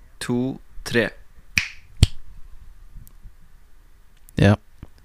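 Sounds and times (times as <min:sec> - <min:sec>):
speech: 0:00.3 - 0:01.2, 0:04.4 - 0:04.6
finger snap for syncing recordings: 0:01.6 - 0:02.2.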